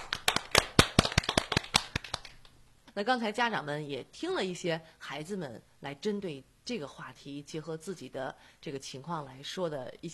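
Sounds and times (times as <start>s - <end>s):
audience applause welcoming the parents: 0.0s - 2.6s
speech: 3.0s - 10.1s.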